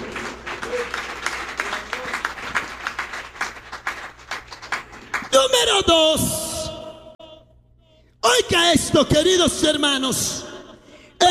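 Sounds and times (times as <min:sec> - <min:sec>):
audience applause: 0:00.0 - 0:05.6
speech: 0:05.4 - 0:06.4, 0:08.5 - 0:10.5.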